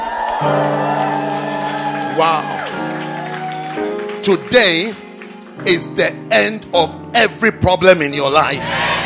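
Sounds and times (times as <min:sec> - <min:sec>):
audience hand clapping: 0:00.0 - 0:05.7
speech: 0:00.4 - 0:01.0, 0:02.2 - 0:02.6, 0:04.2 - 0:05.0, 0:05.6 - 0:08.9.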